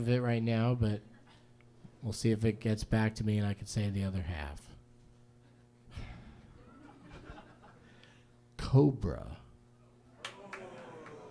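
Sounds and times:
speech: 0.0s - 1.1s, 2.0s - 4.7s, 8.7s - 9.4s
laughter: 6.4s - 8.0s, 10.2s - 11.2s
hand claps: 10.2s - 11.2s.

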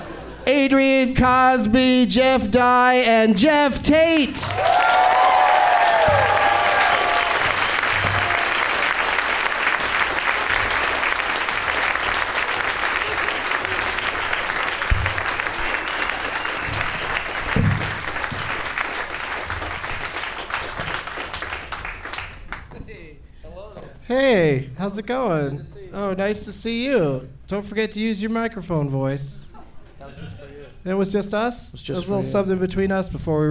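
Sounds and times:
speech: 0.5s - 5.5s, 24.1s - 29.4s, 30.2s - 33.4s
studio audience applauding to welcome guests onto a show: 4.4s - 22.7s.

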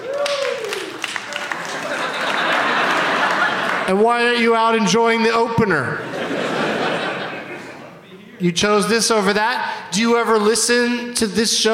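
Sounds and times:
audience applause: 0.0s - 3.9s
laughter: 1.2s - 4.1s, 6.0s - 8.1s
speech: 3.9s - 6.1s, 8.4s - 11.7s.

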